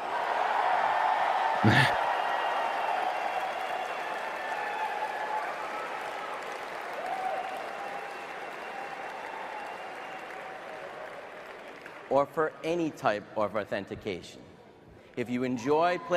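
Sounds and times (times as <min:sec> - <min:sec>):
crowd applauding: 0:00.0 - 0:12.2
speech: 0:01.6 - 0:02.0, 0:12.2 - 0:14.5, 0:15.2 - 0:16.1.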